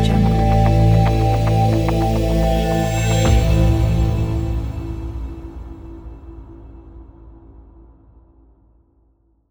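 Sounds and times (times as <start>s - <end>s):
abstract crystal logo sound: 0.2s - 5.8s.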